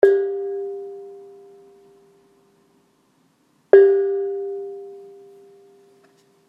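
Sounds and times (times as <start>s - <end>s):
gong: 0.0s - 2.1s, 3.8s - 6.0s.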